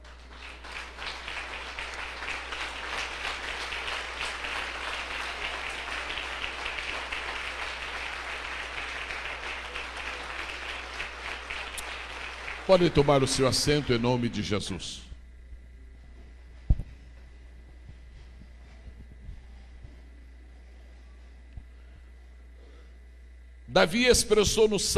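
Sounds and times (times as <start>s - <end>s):
audience applause: 0.0s - 14.8s
speech: 12.7s - 15.1s, 23.8s - 24.9s.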